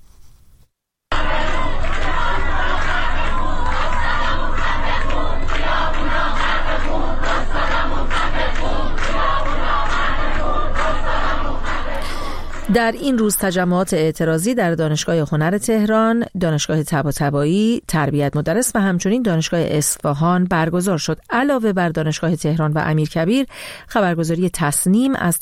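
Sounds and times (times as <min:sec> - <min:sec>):
protesting university students chanting an anti-dictator slogan: 0:01.1 - 0:12.8
speech: 0:12.7 - 0:25.4.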